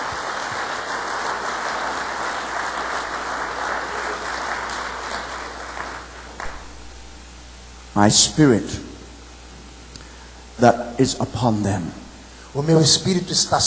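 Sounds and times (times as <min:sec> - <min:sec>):
large crowd applauding in a reverberant hall: 0:00.0 - 0:07.2
speech: 0:08.0 - 0:08.9, 0:10.6 - 0:13.6.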